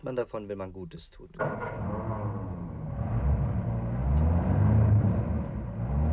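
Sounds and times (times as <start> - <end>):
speech: 0.0 - 2.1
car engine stalling: 1.4 - 6.1.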